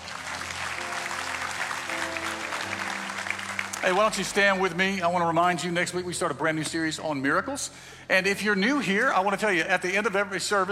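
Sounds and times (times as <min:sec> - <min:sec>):
church congregation applauding at Mount Paran North: 0:00.0 - 0:05.3
speech: 0:03.8 - 0:10.6.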